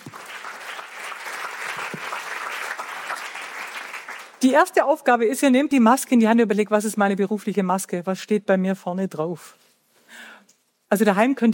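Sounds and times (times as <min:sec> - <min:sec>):
small group applauding: 0:00.0 - 0:04.4
speech: 0:04.4 - 0:10.3, 0:10.9 - 0:11.5.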